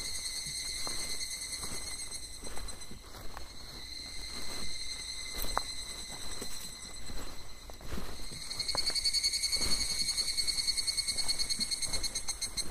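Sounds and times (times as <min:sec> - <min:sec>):
footsteps: 0:00.0 - 0:12.6
insects buzzing on a summer evening hike: 0:00.0 - 0:12.6.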